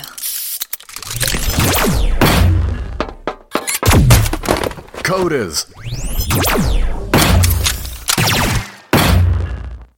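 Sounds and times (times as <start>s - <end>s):
gunshots in a dramatized scene: 1.4s - 3.0s, 3.8s - 4.6s, 6.2s - 9.7s
speech: 5.1s - 6.8s.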